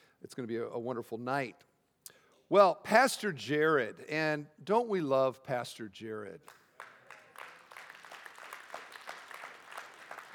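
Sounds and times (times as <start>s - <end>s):
speech: 0.2s - 1.7s, 2.5s - 6.6s
audience applause: 6.8s - 10.3s.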